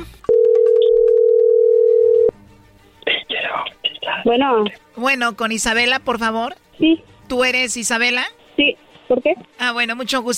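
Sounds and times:
telephone tone: 0.3 - 2.3
speech: 4.2 - 10.3.

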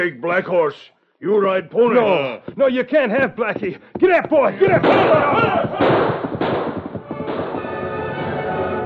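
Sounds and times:
speech: 0.0 - 6.6
distant gunshots: 4.6 - 8.7.

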